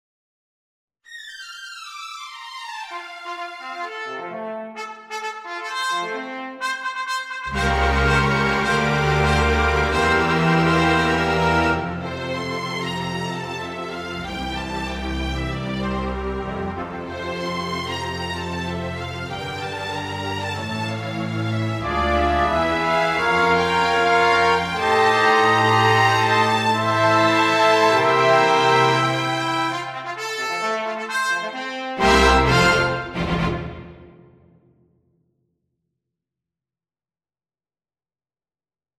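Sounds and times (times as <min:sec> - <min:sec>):
orchestral fanfare: 0:02.9 - 0:34.6.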